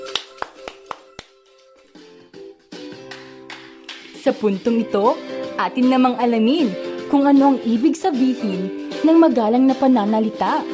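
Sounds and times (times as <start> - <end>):
hand claps: 0.0 - 1.8, 2.7 - 4.2
speech: 4.2 - 10.7.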